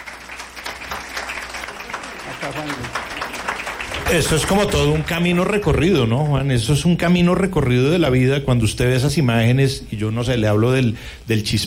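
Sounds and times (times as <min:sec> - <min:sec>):
audience applause: 0:00.0 - 0:06.2
speech: 0:02.3 - 0:03.5, 0:04.1 - 0:11.6.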